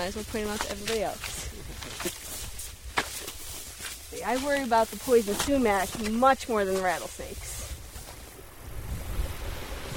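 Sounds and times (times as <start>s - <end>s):
speech: 0.0s - 2.2s, 4.1s - 7.5s
small waterfall cascading out of a beaver dam on a creek: 8.4s - 9.9s.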